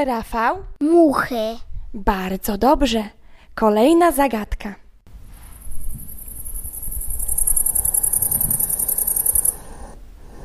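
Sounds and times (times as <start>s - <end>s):
speech: 0.0s - 4.8s
soft low rumble of wind or rustling: 5.1s - 10.4s
grasshopper chirping: 5.3s - 9.9s.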